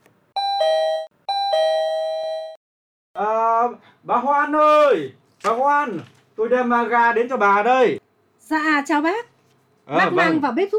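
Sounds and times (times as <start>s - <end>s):
doorbell ringing: 0.4s - 2.6s
speech: 3.6s - 9.3s, 9.9s - 10.7s.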